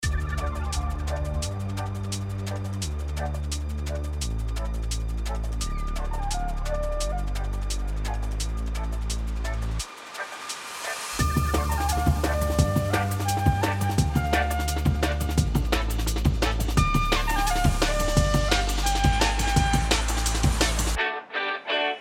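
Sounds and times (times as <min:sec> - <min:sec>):
instrumental music: 0:00.0 - 0:21.9.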